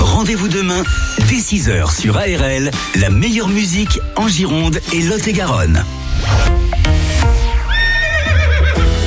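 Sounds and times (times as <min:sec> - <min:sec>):
speech: 0:00.2 - 0:06.5
horse neighing: 0:07.7 - 0:08.9.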